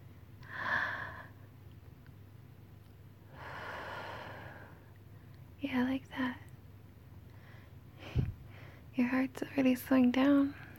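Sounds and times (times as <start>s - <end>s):
low steady hum: 0.0s - 10.7s
slow deep breathing: 0.4s - 1.4s, 3.3s - 5.3s, 7.3s - 8.9s
speech: 5.6s - 6.4s, 9.0s - 10.6s.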